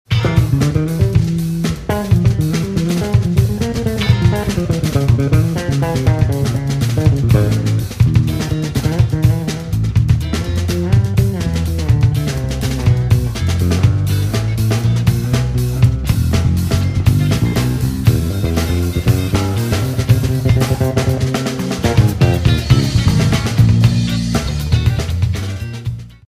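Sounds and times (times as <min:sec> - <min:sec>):
bass solo: 0:00.0 - 0:26.2.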